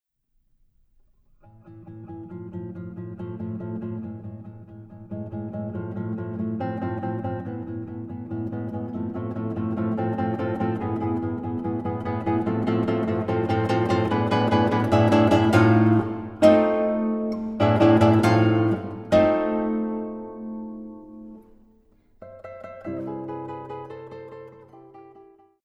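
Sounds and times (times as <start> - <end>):
guitar duo playing: 1.4 - 25.6.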